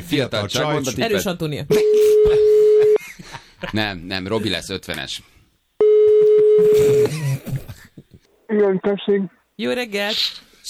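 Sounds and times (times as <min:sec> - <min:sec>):
speech: 0:00.1 - 0:02.6, 0:03.6 - 0:05.4, 0:06.6 - 0:07.5, 0:08.6 - 0:10.5
telephone tone as a call is placed: 0:01.8 - 0:03.0, 0:05.8 - 0:07.1.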